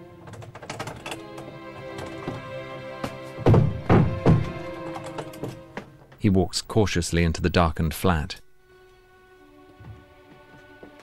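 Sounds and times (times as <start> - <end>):
door being forced open with a pocket knife: 0.2 - 6.0
speech: 6.2 - 8.4.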